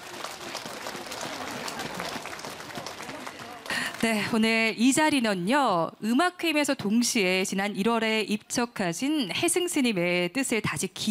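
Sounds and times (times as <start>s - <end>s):
audience applause for a choir: 0.0s - 4.4s
speech: 4.0s - 11.0s.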